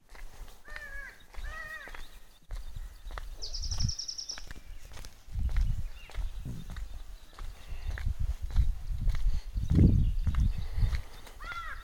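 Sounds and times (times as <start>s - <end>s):
uneven footsteps on a morning walk in the Nilgiris: 0.0s - 11.4s
birds chirping: 0.0s - 11.8s
low wind rumble on breezy roads of Nilgiris: 0.9s - 11.8s.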